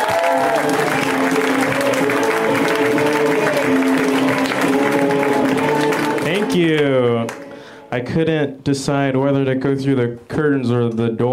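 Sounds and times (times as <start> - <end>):
audience applause for a comedian: 0.0 - 7.7
crowd cheering: 0.0 - 7.8
speech: 8.0 - 11.3.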